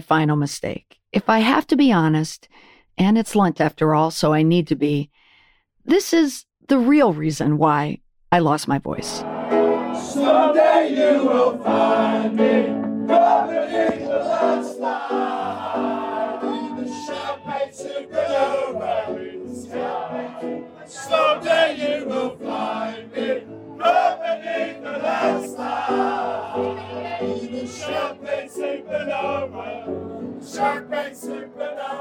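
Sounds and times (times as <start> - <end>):
speech: 0.0 - 5.2, 5.8 - 9.3, 21.1 - 31.9
crowd singing along at Lafitte's piano bar on Bourbon Street: 9.2 - 31.9
shouting: 15.4 - 19.1.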